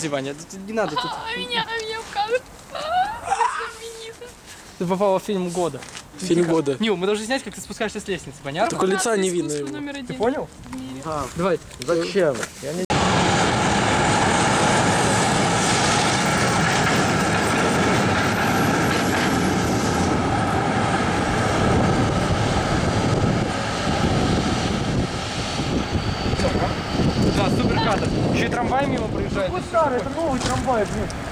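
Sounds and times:
speech: 0.0s - 3.4s, 4.8s - 12.9s, 29.4s - 31.3s
new tram passing: 12.9s - 31.3s.

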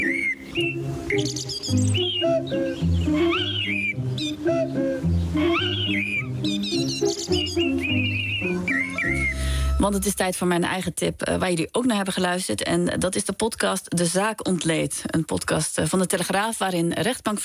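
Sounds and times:
birds chirping and warbling: 0.0s - 10.2s
speech: 1.1s - 6.3s, 9.8s - 17.4s.

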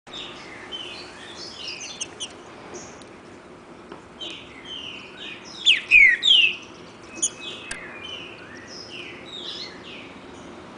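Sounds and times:
wild green-winged saltator singing in the woods: 0.2s - 2.9s, 4.2s - 10.1s.

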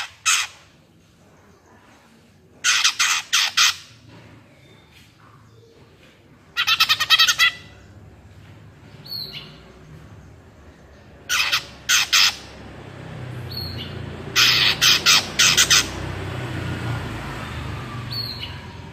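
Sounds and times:
greater green leafbird song: 0.0s - 18.9s.

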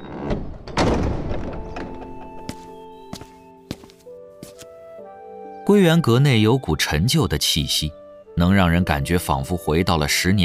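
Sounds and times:
heavy wooden door of an old book pavilion pushed open: 0.0s - 3.2s
footsteps: 1.9s - 4.8s
speech: 5.7s - 10.4s.

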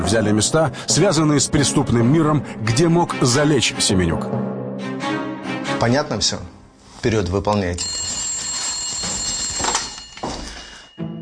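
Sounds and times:
speech: 0.0s - 4.6s, 5.8s - 8.0s
telephone ringing with a harsh metallic jangle: 7.8s - 11.0s.

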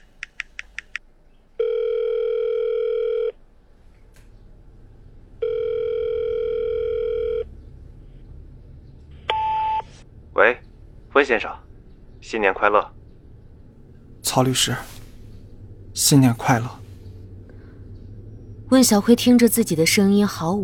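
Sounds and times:
telephone outgoing ringback tone: 1.6s - 3.4s, 5.4s - 7.5s
speech: 11.2s - 13.0s, 14.3s - 15.0s, 16.0s - 16.8s, 18.7s - 20.6s.

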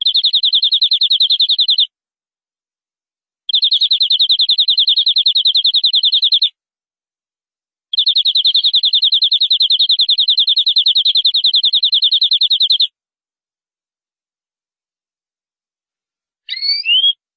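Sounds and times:
canary high-pitched trill song: 0.0s - 1.9s, 3.5s - 6.5s, 7.9s - 12.9s, 16.4s - 17.2s.

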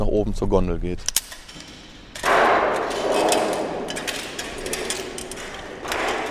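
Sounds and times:
speech: 0.2s - 1.4s
quick footsteps climbing a metal ladder: 1.4s - 6.2s.

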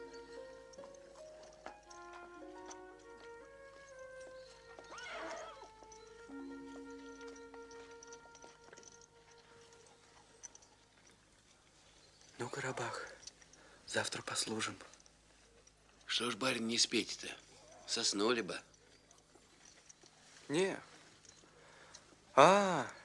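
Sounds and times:
sustained musical tones: 0.0s - 10.7s
hoof clops and shuffling steps: 0.0s - 23.0s
war horse whinnying at night: 4.7s - 6.4s
speech: 14.0s - 15.0s, 16.2s - 18.7s, 20.5s - 20.9s, 22.4s - 23.0s.

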